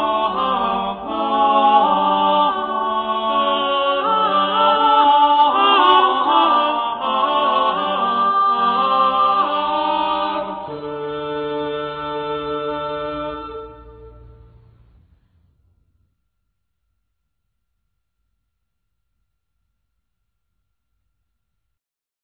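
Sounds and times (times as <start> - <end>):
medieval French song: 0.0 - 15.0.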